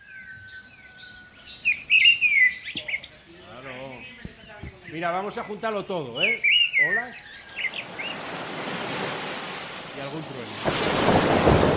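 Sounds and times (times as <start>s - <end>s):
birds chirping and trilling: 0.0s - 11.7s
speech: 4.9s - 7.3s.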